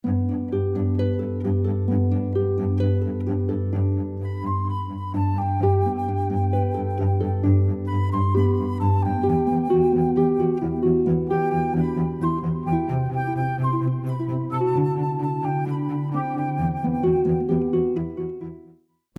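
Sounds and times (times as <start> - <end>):
cello: 0.0 - 18.7
flute: 0.0 - 18.7
harp: 0.0 - 18.8.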